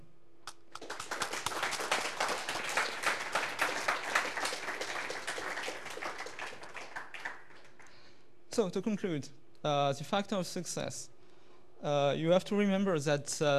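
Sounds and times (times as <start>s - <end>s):
audience applause: 0.7s - 7.9s
speech: 8.6s - 11.2s, 11.8s - 13.5s.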